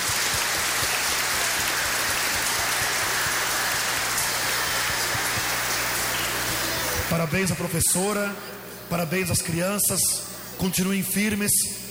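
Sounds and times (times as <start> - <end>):
crowd applause for children's choir: 0.0 - 7.8
speech: 7.2 - 11.8.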